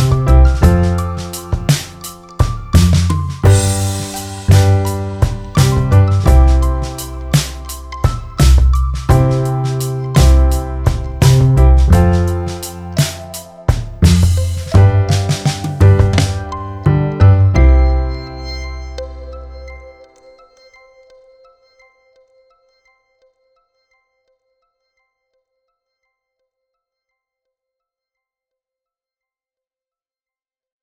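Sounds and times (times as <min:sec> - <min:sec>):
instrumental music: 0:00.0 - 0:20.9.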